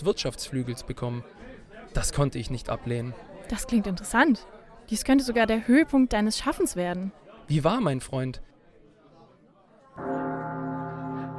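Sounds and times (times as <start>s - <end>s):
speech: 0.0s - 8.5s
night watchman sounding the night hour: 10.0s - 11.3s.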